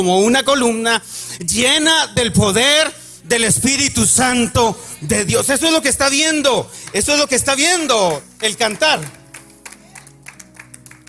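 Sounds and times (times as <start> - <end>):
speech: 0.0 - 9.2
audience applauding: 6.7 - 11.0.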